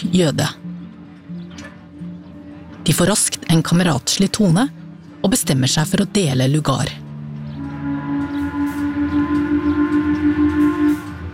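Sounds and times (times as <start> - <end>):
speech: 0.0 - 0.6, 2.9 - 7.0
low pulsing rumble: 7.0 - 11.3
steamship horn blast: 7.6 - 11.3.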